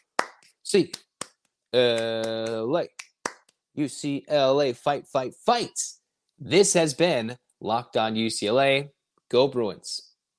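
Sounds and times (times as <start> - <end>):
sharp claps: 0.0 - 3.5
person's voice: 0.7 - 1.0, 1.8 - 3.0, 3.8 - 10.0
speech: 0.7 - 1.0, 1.7 - 3.0, 3.8 - 10.1.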